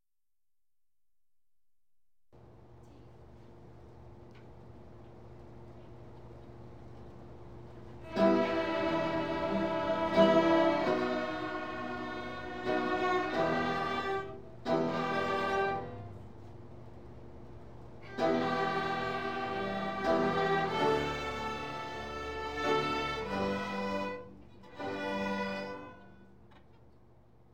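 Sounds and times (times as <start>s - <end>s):
baroque toccata: 8.0s - 16.0s, 18.1s - 26.3s.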